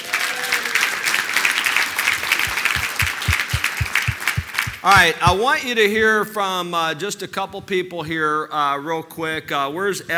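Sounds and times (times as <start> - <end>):
audience applause: 0.0 - 5.4
low thuds: 2.5 - 5.5
speech: 4.8 - 10.1.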